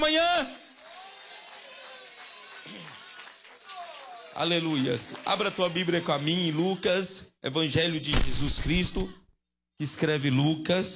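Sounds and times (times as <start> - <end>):
audience clapping hands: 0.0 - 7.1
speech: 4.4 - 9.2, 9.8 - 10.9.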